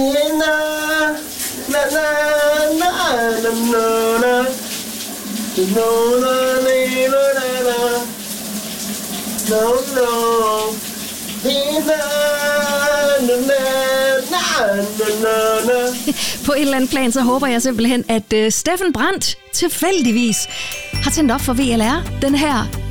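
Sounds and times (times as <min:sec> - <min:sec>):
man singing loudly in the shower: 0:00.0 - 0:04.6, 0:05.6 - 0:08.2, 0:09.5 - 0:10.8, 0:11.4 - 0:16.2
shower running with hissing spray: 0:00.0 - 0:22.7
speech: 0:01.8 - 0:04.7, 0:05.6 - 0:08.1, 0:09.5 - 0:10.8, 0:11.4 - 0:22.8.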